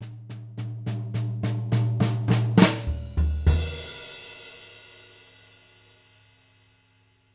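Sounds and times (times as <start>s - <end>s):
swing live drums: 0.0s - 5.4s.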